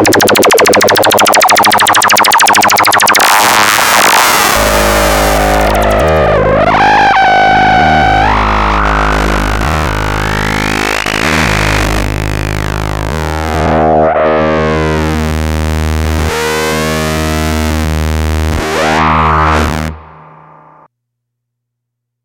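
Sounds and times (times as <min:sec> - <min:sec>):
Polivoks VCF synthesizer filter: 0:00.0 - 0:20.9.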